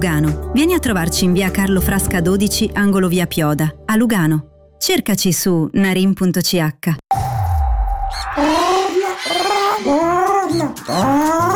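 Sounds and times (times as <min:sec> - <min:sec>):
speech: 0:00.0 - 0:07.2, 0:08.1 - 0:11.5
parrot squawking: 0:08.1 - 0:11.5.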